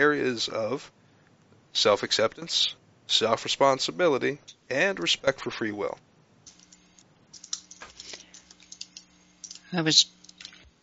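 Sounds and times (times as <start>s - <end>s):
speech: 0.0s - 1.0s, 1.8s - 6.1s, 9.7s - 10.2s
computer keyboard typing while writing in a chat: 7.4s - 9.6s.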